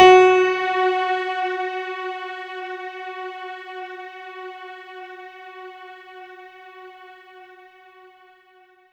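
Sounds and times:
synth note F sharp 4: 0.0 - 2.5.

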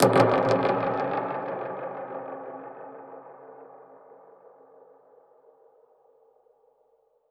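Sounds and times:
dub percussion hit: 0.0 - 3.8.

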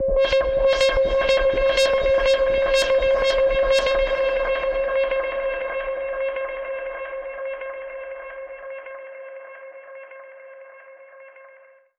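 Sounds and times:
alarm siren with modulation processing: 0.0 - 6.4.

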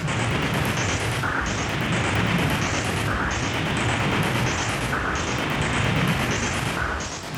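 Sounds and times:
tempo loop: 0.0 - 7.3.

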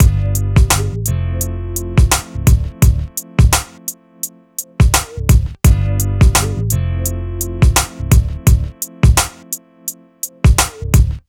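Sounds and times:
hip hop and R&B drum loops: 0.0 - 1.2, 1.8 - 4.0, 4.6 - 6.8, 7.4 - 9.6, 10.2 - 11.2.

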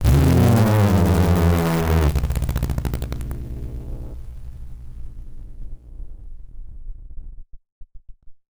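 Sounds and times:
malfunctioning synth with random failures: 0.0 - 6.1.

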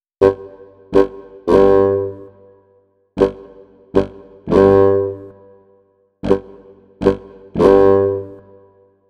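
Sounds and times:
bass clarinet in cinematic funk: 0.2 - 8.9.

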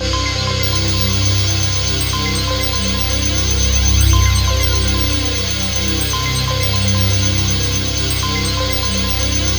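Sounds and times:
ambient atmospheric soundtrack music: 0.0 - 9.5.

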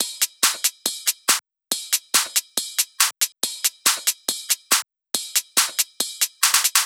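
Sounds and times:
drum loop: 0.0 - 6.8
percussion: 0.0 - 6.8.

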